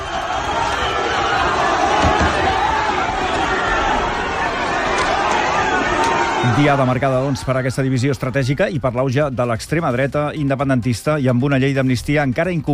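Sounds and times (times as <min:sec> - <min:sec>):
protest crowd roaring and shouting: 0:00.0 - 0:09.2
speech: 0:06.6 - 0:12.7.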